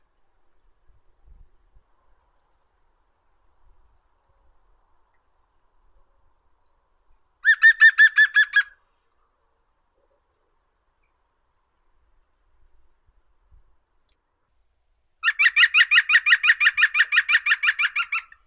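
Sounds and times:
green woodpecker Picus viridis: 7.4s - 8.7s, 15.2s - 18.4s.

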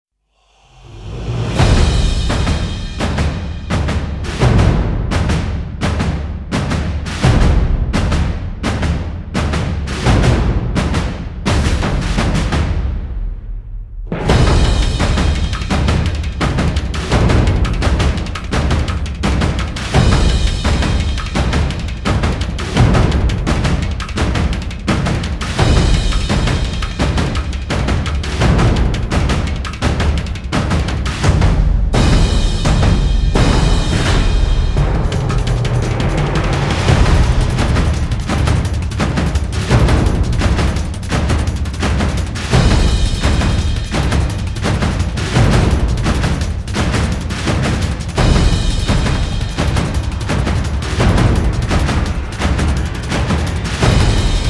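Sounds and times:
drums building: 0.5s - 54.4s.

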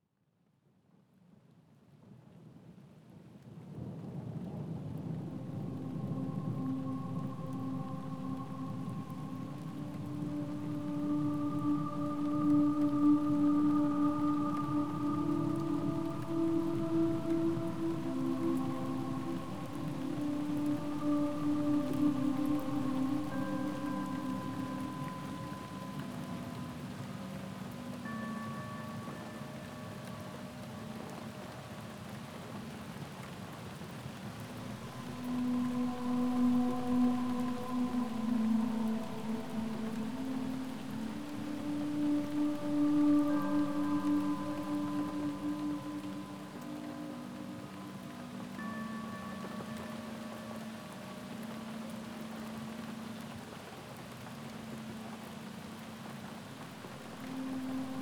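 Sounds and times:
tropical rainfall: 2.7s - 58.0s.

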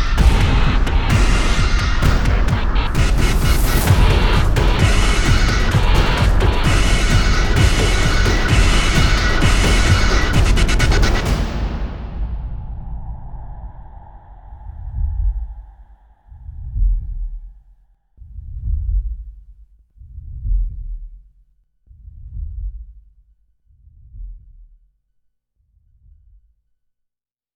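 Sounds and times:
percussion: 0.0s - 17.6s.

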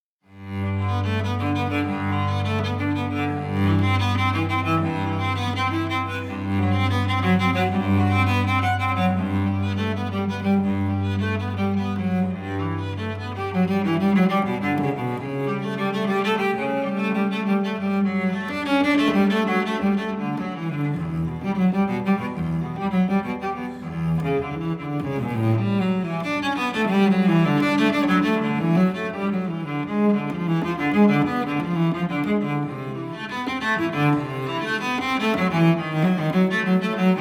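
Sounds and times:
solo cello piece in G major: 0.2s - 37.1s.

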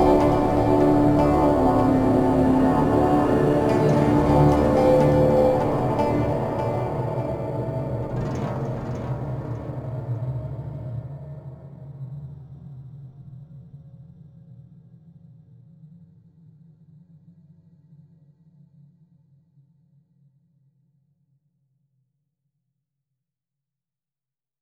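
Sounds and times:
desert-themed instrumental music: 0.0s - 10.6s.

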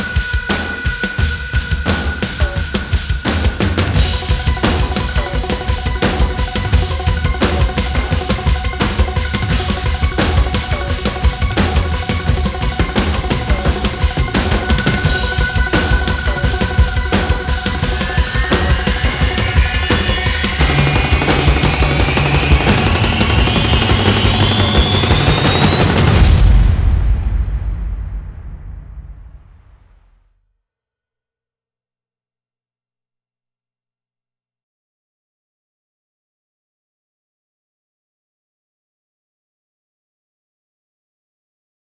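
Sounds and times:
drums: 0.0s - 30.0s.

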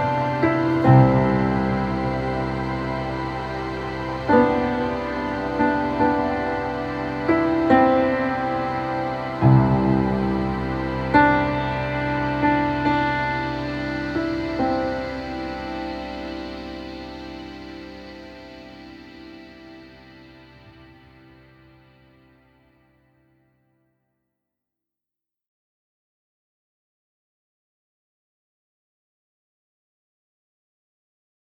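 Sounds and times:
ambience: 0.0s - 23.0s
piano: 0.0s - 23.0s.

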